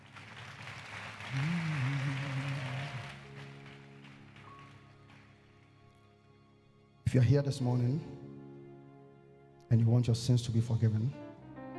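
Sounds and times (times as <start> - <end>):
audience clapping hands: 0.0 - 5.8
speech: 7.1 - 8.2, 9.7 - 11.2.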